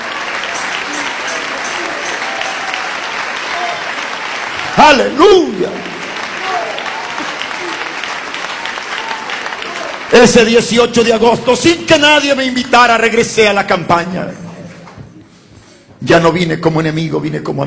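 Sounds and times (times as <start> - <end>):
audience applauding in praise: 0.0 - 11.6
speech: 4.8 - 5.9, 10.1 - 14.4, 16.0 - 17.6.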